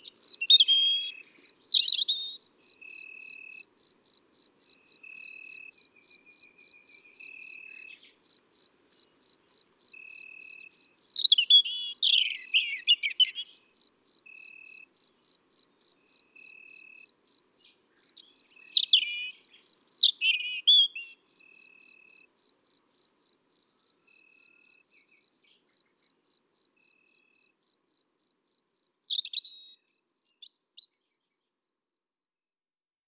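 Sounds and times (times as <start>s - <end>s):
European robin song: 0.0s - 3.4s, 5.1s - 8.4s, 10.0s - 13.7s, 17.6s - 22.0s, 24.1s - 26.1s, 28.5s - 31.5s.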